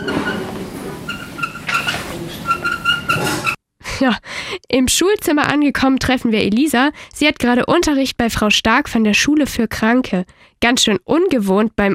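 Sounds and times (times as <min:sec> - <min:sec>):
squeaking wheels of a camera dolly: 0:00.0 - 0:03.6
speech: 0:04.0 - 0:11.9.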